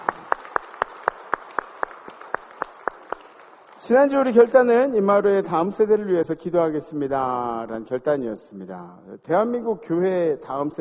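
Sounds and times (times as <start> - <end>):
audience clapping: 0.0 - 4.9
speech: 3.9 - 10.8.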